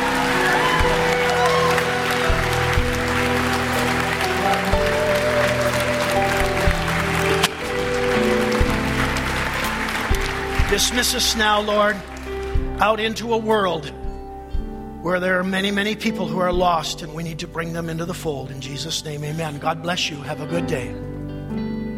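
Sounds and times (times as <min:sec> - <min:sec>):
church audience shouting: 0:00.0 - 0:10.8
church audience clapping: 0:00.0 - 0:13.0
speech: 0:10.8 - 0:12.2, 0:12.8 - 0:14.0, 0:15.0 - 0:21.1.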